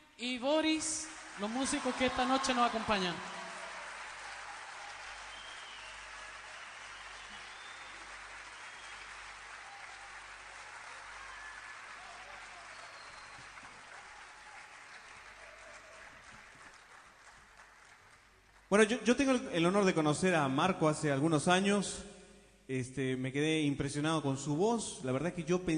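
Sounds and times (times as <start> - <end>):
speech: 0.2 - 3.4, 18.7 - 22.1, 22.7 - 25.7
audience applause: 1.0 - 18.7.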